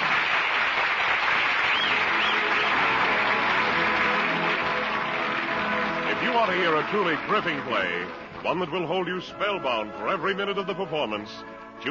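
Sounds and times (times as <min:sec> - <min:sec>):
theater audience applauding at the curtain call of a Broadway play: 0:00.0 - 0:09.0
speech: 0:06.4 - 0:11.8.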